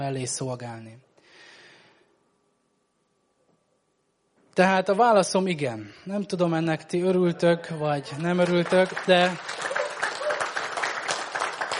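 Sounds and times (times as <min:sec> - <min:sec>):
speech: 0:00.0 - 0:01.1, 0:04.6 - 0:09.8
church congregation applause: 0:08.1 - 0:11.7.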